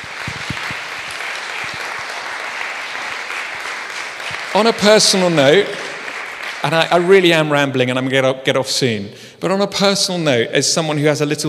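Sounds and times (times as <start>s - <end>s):
audience applause: 0.0s - 7.2s
speech: 4.5s - 5.8s, 6.6s - 11.4s.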